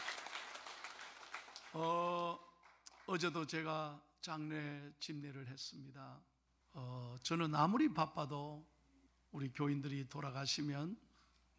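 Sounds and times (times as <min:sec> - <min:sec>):
audience applauding choir and orchestra: 0:00.0 - 0:02.0
speech: 0:01.7 - 0:02.5, 0:03.1 - 0:08.7, 0:09.3 - 0:11.0.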